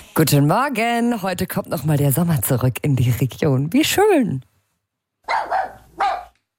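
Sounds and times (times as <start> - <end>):
speech: 0.2 - 4.5
dogs barking at an outdoor swimming pool: 5.2 - 6.4.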